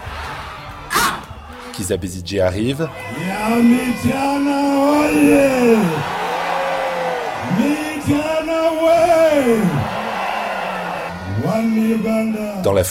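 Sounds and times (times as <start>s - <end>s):
crowd shouting: 0.0s - 1.8s, 2.9s - 12.7s
speech: 1.8s - 6.1s, 7.5s - 9.9s, 11.5s - 12.8s.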